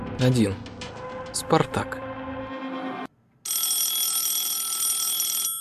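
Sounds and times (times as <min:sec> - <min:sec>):
speech: 0:00.2 - 0:00.7, 0:01.4 - 0:02.1
field telephone ringing: 0:03.5 - 0:05.5.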